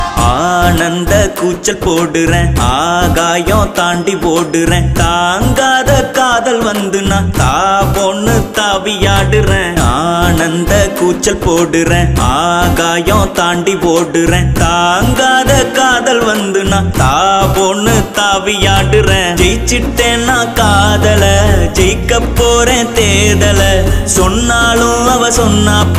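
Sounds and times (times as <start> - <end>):
song: 0.0 - 25.9.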